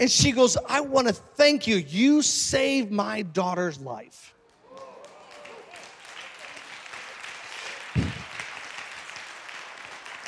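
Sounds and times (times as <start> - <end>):
speech: 0.0 - 4.3
people clapping: 4.4 - 10.2.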